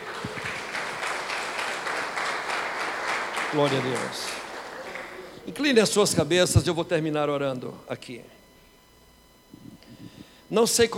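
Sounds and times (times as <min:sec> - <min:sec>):
audience applause: 0:00.0 - 0:05.4
speech: 0:03.5 - 0:04.4, 0:05.5 - 0:08.4, 0:10.5 - 0:10.9.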